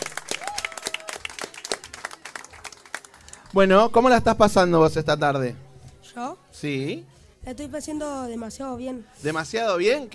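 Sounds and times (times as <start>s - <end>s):
applause: 0.0s - 3.6s
speech: 3.6s - 5.6s, 6.2s - 10.1s.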